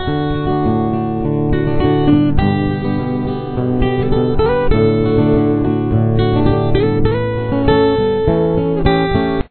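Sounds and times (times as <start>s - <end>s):
guitar: 0.0s - 9.4s.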